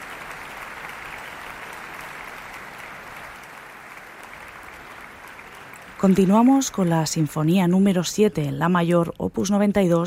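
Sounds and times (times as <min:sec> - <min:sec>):
large crowd audience applause: 0:00.0 - 0:07.2
speech: 0:06.0 - 0:10.0.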